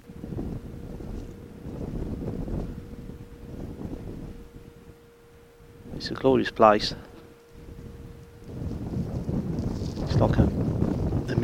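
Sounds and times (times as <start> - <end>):
constant low tone: 0.0 - 11.4
wind buffeting in an open-top MG car with the roof down: 0.0 - 11.4
speech: 6.0 - 7.1.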